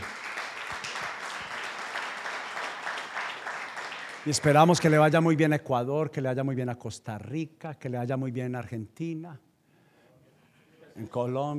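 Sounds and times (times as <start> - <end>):
crowd applauding: 0.0 - 5.2
speech: 4.2 - 9.5, 11.0 - 11.5.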